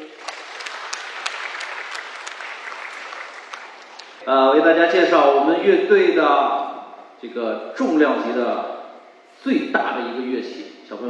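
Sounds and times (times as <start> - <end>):
audience applause: 0.0 - 4.2
speech: 4.2 - 6.6, 7.2 - 8.8, 9.4 - 11.0.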